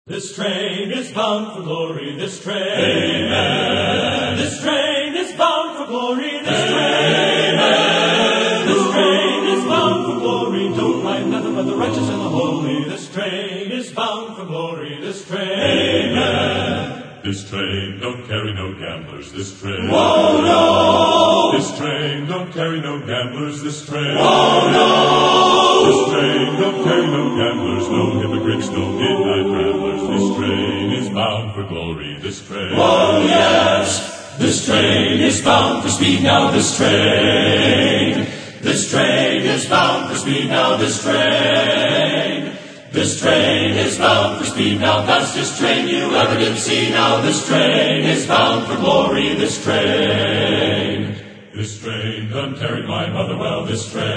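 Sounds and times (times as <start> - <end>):
men's choir singing: 0.1 - 54.1.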